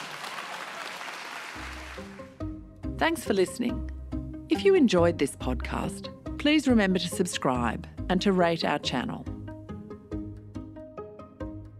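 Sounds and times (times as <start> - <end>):
audience applause: 0.0 - 2.4
speech: 2.0 - 2.2, 3.0 - 9.3.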